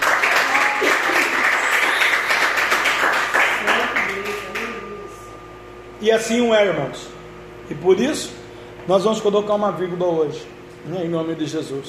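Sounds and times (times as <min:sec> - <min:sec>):
audience applause: 0:00.0 - 0:04.7
speech: 0:06.0 - 0:11.8.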